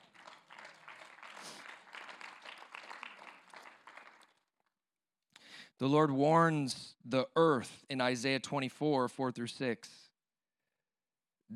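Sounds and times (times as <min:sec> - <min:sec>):
audience clapping: 0:00.0 - 0:04.5
speech: 0:05.8 - 0:10.1.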